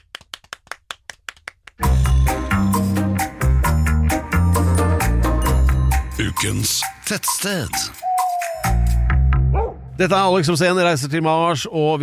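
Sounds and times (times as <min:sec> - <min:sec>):
audience clapping: 0:00.0 - 0:02.0
loud music with heavy bass and sustained chords: 0:01.8 - 0:08.0, 0:08.6 - 0:10.2
speech: 0:06.4 - 0:08.0, 0:10.0 - 0:12.0.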